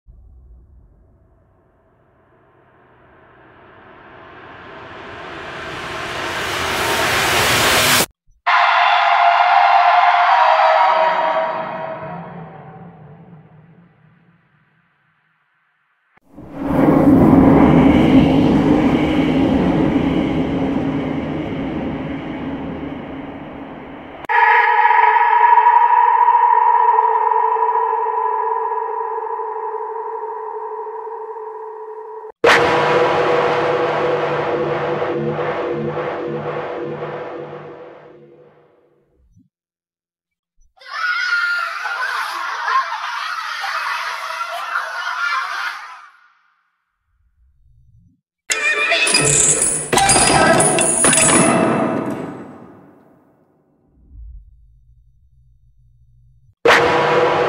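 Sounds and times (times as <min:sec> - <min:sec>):
scary horror film weapon sound effects: 0:00.1 - 0:14.8, 0:16.3 - 0:39.0, 0:48.5 - 0:54.6, 0:56.7 - 0:57.4
laughter: 0:41.7 - 0:45.9.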